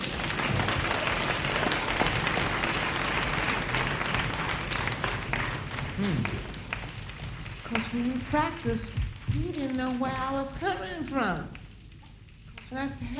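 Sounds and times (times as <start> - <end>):
crowd noise: 0.0 - 9.0
audience applause: 0.0 - 11.2
speech: 7.9 - 11.6, 12.7 - 13.1.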